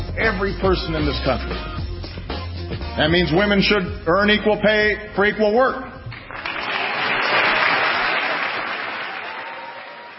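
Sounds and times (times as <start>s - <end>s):
speech: 0.2s - 1.8s, 2.7s - 5.9s
audience applause: 6.3s - 10.1s.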